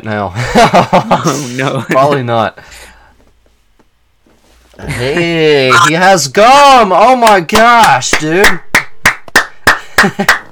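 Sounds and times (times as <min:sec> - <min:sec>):
speech: 0:00.0 - 0:02.9, 0:04.8 - 0:08.7, 0:10.0 - 0:10.4
people clapping hands: 0:07.2 - 0:10.4.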